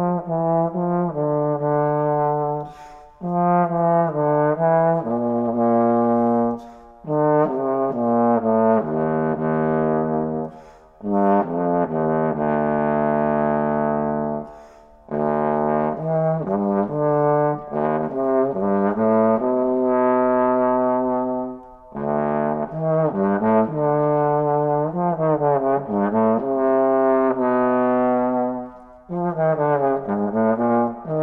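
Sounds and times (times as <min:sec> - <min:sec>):
bass trombone: 0:00.0 - 0:31.2.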